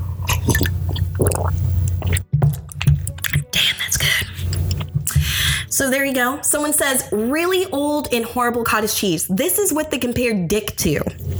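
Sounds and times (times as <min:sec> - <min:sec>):
steady low hum: 0:00.0 - 0:02.2
person sipping beer from a bottle: 0:00.0 - 0:05.4
speech: 0:05.9 - 0:11.3.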